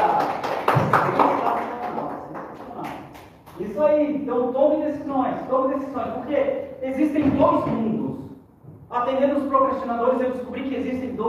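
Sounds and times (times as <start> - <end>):
audience applause: 0.0 - 2.9
speech: 3.8 - 8.0, 9.0 - 11.2.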